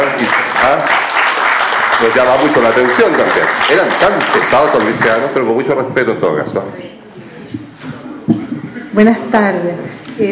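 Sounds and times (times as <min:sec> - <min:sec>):
audience clapping: 0:00.0 - 0:05.5
speech: 0:02.0 - 0:07.0, 0:09.0 - 0:10.3.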